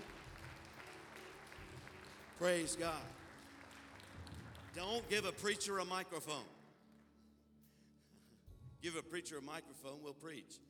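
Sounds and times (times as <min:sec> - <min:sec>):
audience applause: 0:00.0 - 0:05.6
speech: 0:02.4 - 0:03.2, 0:04.8 - 0:06.6, 0:08.8 - 0:10.6.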